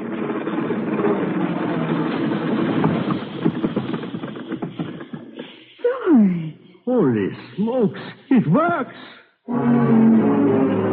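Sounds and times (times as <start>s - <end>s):
train engine approaching: 0.0s - 10.9s
speech: 7.3s - 10.4s.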